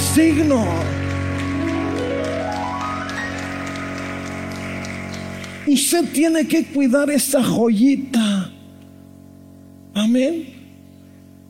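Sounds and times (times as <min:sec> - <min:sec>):
audience applause: 0:00.0 - 0:06.5
speech: 0:00.2 - 0:01.1, 0:05.7 - 0:08.5, 0:10.0 - 0:10.5.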